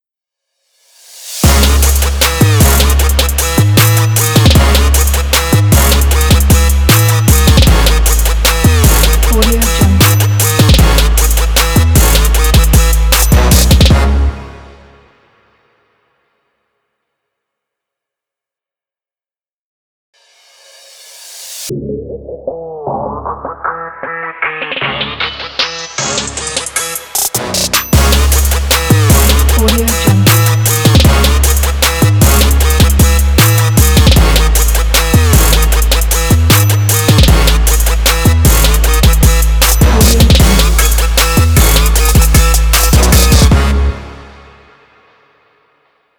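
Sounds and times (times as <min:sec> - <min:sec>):
hip hop trap sport logo music: 0:01.0 - 0:14.8, 0:20.7 - 0:44.6.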